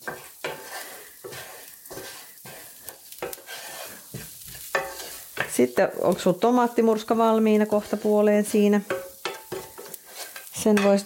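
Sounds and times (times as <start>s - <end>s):
ginger, turmeric, chili, cinnamon and cumin seeds sizzling in oil: 0.0s - 11.0s
speech: 5.6s - 9.0s, 10.6s - 11.0s.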